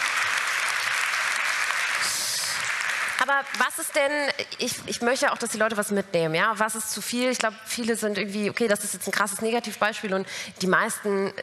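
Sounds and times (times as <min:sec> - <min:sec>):
audience applause: 0:00.0 - 0:03.7
speech: 0:03.2 - 0:11.4.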